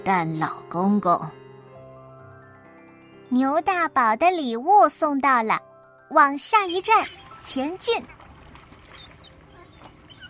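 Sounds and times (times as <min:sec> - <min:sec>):
speech: 0:00.0 - 0:01.4, 0:03.3 - 0:08.2
seagulls calling: 0:06.3 - 0:10.2
water wash: 0:06.7 - 0:10.2.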